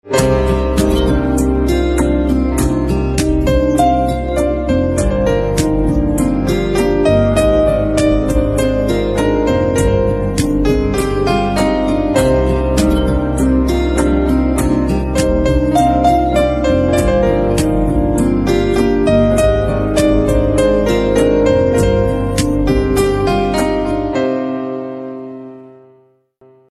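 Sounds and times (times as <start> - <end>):
instrumental piano ringtone: 0.0 - 26.0.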